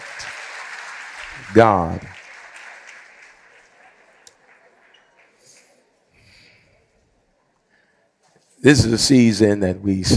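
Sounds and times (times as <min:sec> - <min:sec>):
audience applauding: 0:00.0 - 0:06.0
speech: 0:01.4 - 0:02.2, 0:08.6 - 0:10.1.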